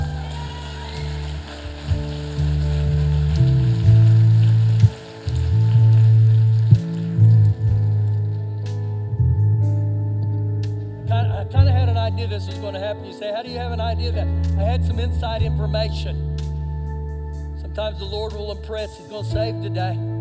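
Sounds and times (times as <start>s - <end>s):
audience clapping: 0.0s - 8.9s
loud sustained low musical drone: 0.0s - 20.1s
speech: 12.4s - 16.3s, 17.8s - 20.1s.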